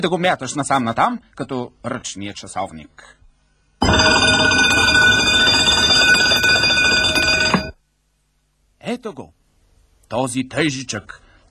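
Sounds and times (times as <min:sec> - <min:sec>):
speech: 0:00.0 - 0:03.2, 0:08.8 - 0:09.4, 0:10.1 - 0:11.2
mechanical alarm clock bell ringing: 0:03.8 - 0:07.8.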